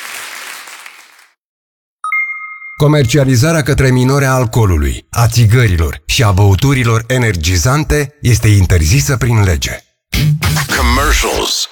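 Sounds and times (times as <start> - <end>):
applause in a Rock FM jingle: 0.0 - 1.4
speech: 2.8 - 11.7.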